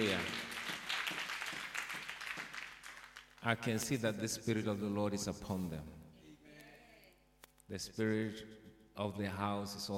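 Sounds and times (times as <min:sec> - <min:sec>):
church congregation clapping for the ministers: 0:00.0 - 0:03.8
speech: 0:03.4 - 0:06.0, 0:07.7 - 0:09.9.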